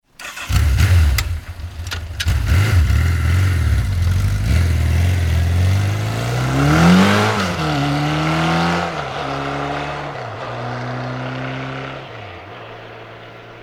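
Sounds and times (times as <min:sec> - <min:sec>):
Suzuki 1100 motorcycle starting and pulling away: 0:00.1 - 0:13.6.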